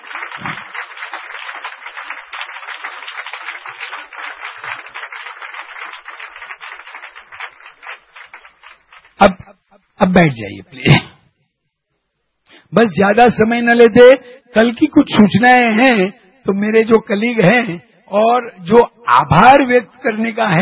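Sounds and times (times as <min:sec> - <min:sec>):
audience applause, standing ovation: 0:00.0 - 0:09.2
speech: 0:10.0 - 0:11.0, 0:12.8 - 0:20.6.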